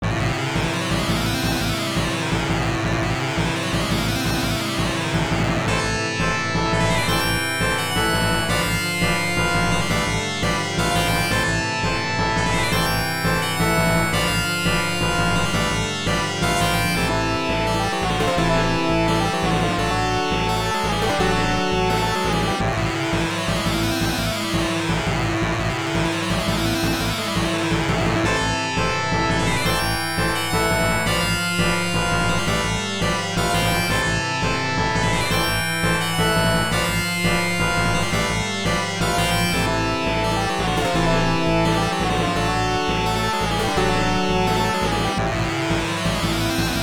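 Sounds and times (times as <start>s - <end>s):
boss battle background music: 0.1s - 46.8s.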